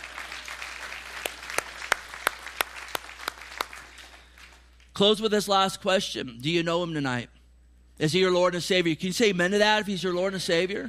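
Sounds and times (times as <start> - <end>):
audience hand clapping: 0.0 - 4.9
speech: 5.0 - 7.4, 8.0 - 10.8.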